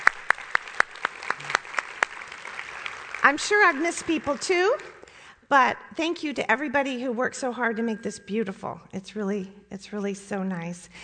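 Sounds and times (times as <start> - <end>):
audience applause: 0.0 - 5.0
speech: 3.3 - 4.9, 5.5 - 11.0.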